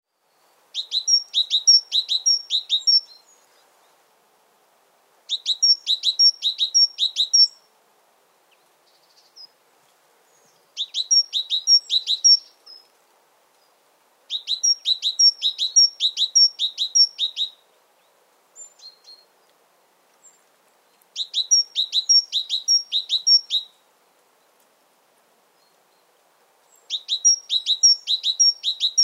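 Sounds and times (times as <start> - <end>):
great tit singing: 0.8 - 3.3, 5.3 - 7.6, 10.4 - 12.8, 14.3 - 17.6, 21.2 - 23.7, 26.8 - 29.0.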